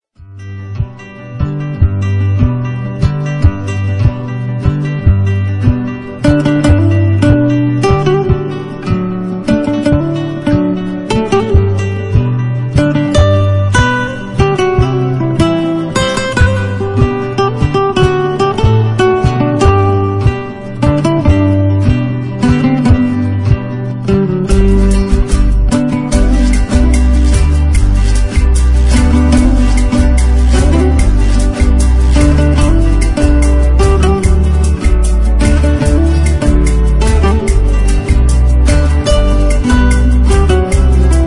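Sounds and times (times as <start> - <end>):
Violao instrumental: 0.2 - 41.2.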